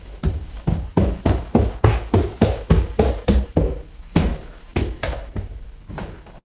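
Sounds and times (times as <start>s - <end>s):
footsteps on stairs: 0.0s - 6.4s.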